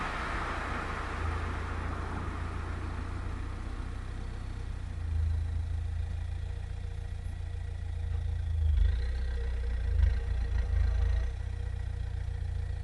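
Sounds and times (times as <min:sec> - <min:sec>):
car driving and stopping: 0:00.0 - 0:12.8.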